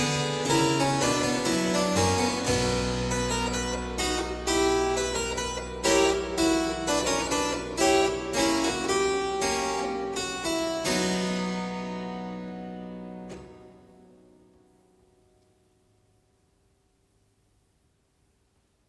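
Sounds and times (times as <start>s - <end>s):
baroque fugue in C minor: 0.0s - 13.8s.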